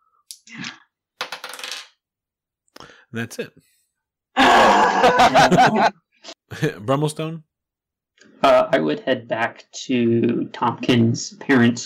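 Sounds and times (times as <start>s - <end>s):
dice rattling on a hard surface: 1.2s - 2.0s
speech: 3.1s - 3.8s, 4.8s - 7.5s, 8.2s - 11.8s
laughter: 4.4s - 6.0s.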